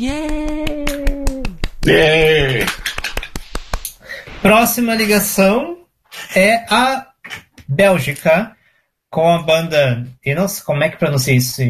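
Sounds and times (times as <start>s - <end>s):
speech: 0.0s - 0.5s, 1.9s - 2.3s, 4.4s - 11.6s
people clapping for a performer: 0.0s - 4.0s.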